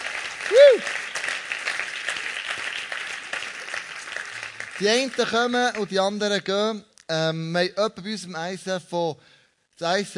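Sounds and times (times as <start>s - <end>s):
audience applause: 0.0s - 5.9s
speech: 0.5s - 1.0s, 4.8s - 10.1s.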